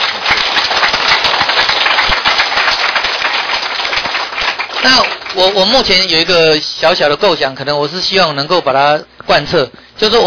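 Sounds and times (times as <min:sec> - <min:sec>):
audience applause: 0:00.0 - 0:06.0
speech: 0:04.8 - 0:10.2.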